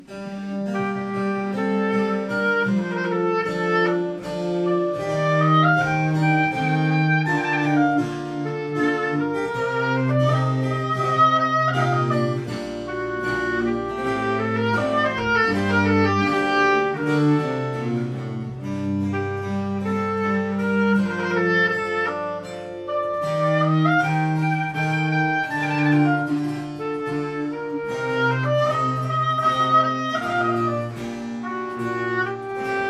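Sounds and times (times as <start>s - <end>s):
sonata in G minor: 0.0s - 32.8s.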